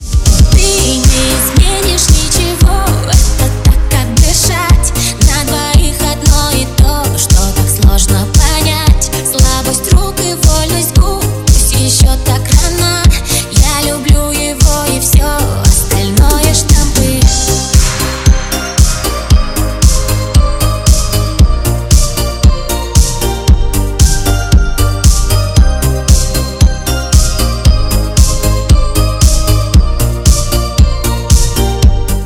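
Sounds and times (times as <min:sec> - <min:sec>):
italo disco remix: 0:00.0 - 0:32.2.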